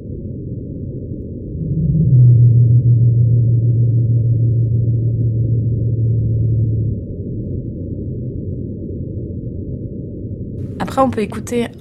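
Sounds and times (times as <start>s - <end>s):
pygmy blue whale song: 1.3s - 9.0s
speech: 11.0s - 11.7s.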